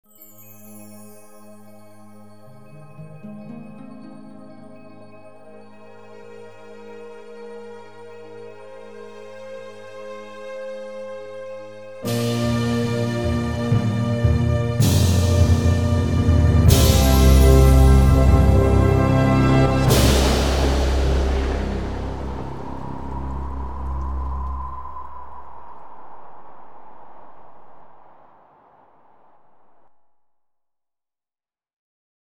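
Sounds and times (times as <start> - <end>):
jingle: 0.0 - 6.8, 12.1 - 23.1.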